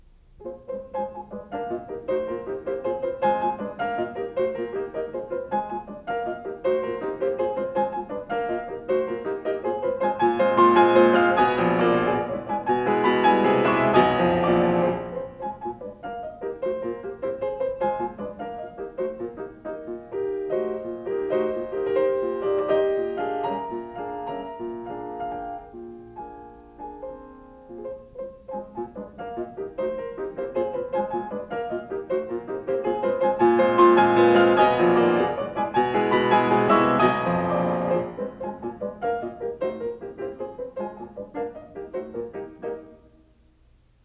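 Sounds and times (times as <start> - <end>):
piano piece: 0.0 - 44.0.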